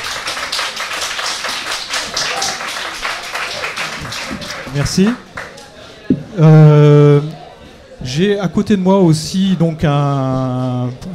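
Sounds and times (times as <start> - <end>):
audience applause: 0.0 - 5.8
speech: 4.8 - 5.3, 6.4 - 6.8, 8.2 - 11.1.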